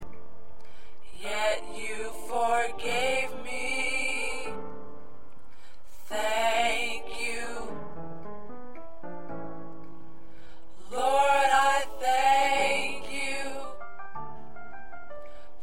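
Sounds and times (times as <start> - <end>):
tenor singing: 1.1 - 4.8, 6.0 - 7.9, 10.8 - 13.8.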